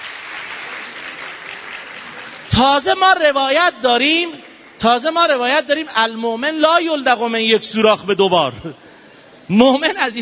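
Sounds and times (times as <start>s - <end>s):
audience applause at a talk: 0.0s - 2.5s
speech: 2.6s - 8.8s, 9.5s - 10.2s.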